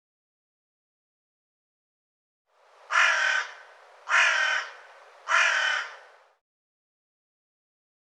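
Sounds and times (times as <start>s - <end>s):
hoarse bird caws: 2.9s - 6.2s.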